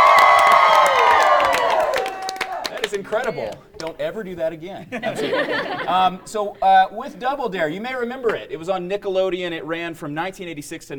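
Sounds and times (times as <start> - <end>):
live studio audience cheering and whooping at a game show taping: 0.0 - 3.9
speech: 3.0 - 10.9
laughter: 4.8 - 6.9.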